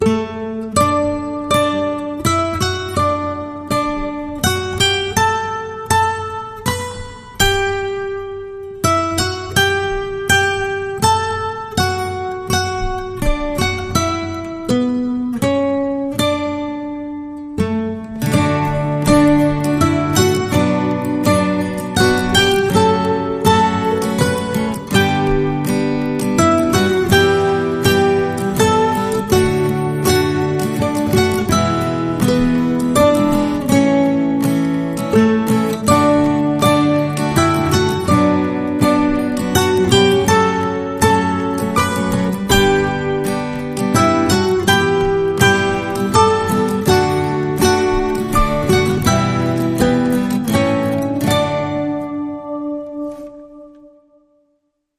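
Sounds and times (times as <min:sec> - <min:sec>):
acoustic guitar: 0:00.0 - 0:54.9.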